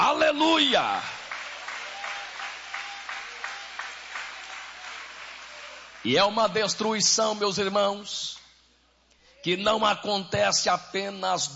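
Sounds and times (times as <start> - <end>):
speech: 0.4 - 1.2, 6.0 - 8.4, 9.4 - 11.5
audience applause: 1.0 - 6.2.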